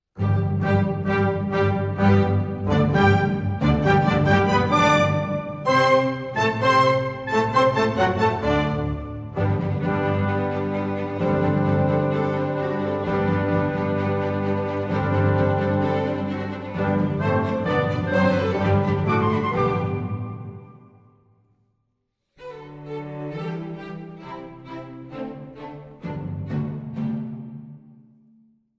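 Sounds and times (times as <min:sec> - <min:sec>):
piano: 0:00.2 - 0:21.2.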